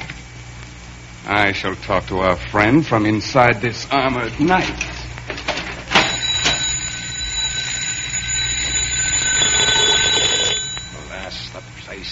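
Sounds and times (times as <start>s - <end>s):
speech: 1.2s - 4.9s
electric doorbell ringing: 5.9s - 12.0s.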